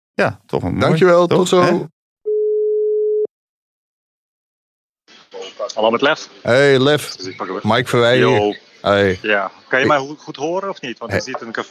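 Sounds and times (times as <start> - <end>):
speech: 0.2 - 2.0, 5.5 - 11.6
telephone ringback tone: 2.3 - 3.3.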